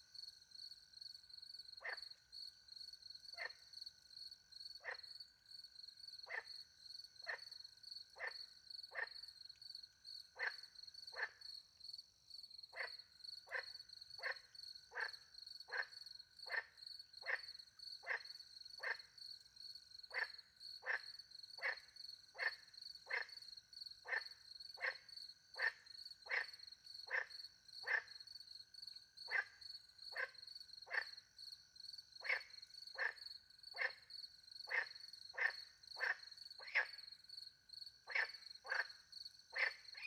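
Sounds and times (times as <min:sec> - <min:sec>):
cricket chorus: 0:00.0 - 0:40.0
frog croaking: 0:01.8 - 0:02.2, 0:03.3 - 0:03.6, 0:04.8 - 0:05.2, 0:06.2 - 0:06.6, 0:07.2 - 0:09.3, 0:10.3 - 0:11.5, 0:12.7 - 0:19.2, 0:20.1 - 0:28.4, 0:29.2 - 0:31.4, 0:32.2 - 0:37.3, 0:38.0 - 0:40.0.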